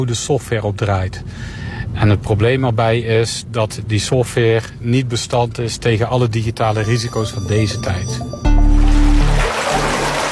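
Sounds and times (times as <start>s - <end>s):
speech: 0.0s - 8.3s
water pumped up by a pumping station churning below a grate: 8.5s - 10.3s.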